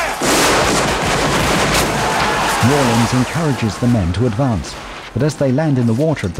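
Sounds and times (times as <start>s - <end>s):
gunfire from Confederate soldiers firing down from a bank into a moat: 0.2s - 3.9s
speech: 2.6s - 6.3s.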